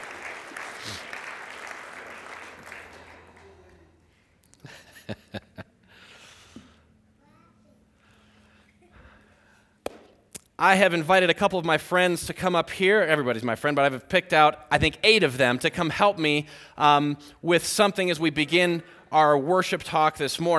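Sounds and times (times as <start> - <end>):
warm round of applause: 0.0 - 4.1
speech: 4.7 - 5.3, 10.6 - 20.5.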